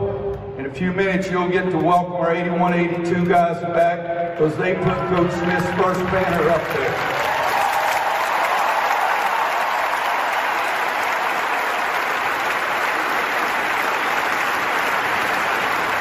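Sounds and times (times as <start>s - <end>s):
speech: 0.7s - 7.2s
large arena crowd applauding and cheering: 4.6s - 16.0s.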